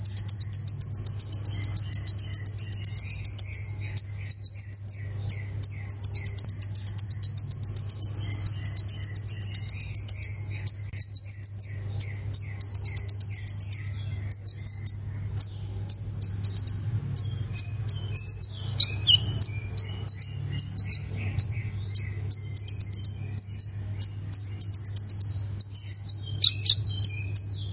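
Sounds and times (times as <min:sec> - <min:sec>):
low hum: 0:00.0 - 0:27.7
plain prinia song: 0:00.0 - 0:27.7.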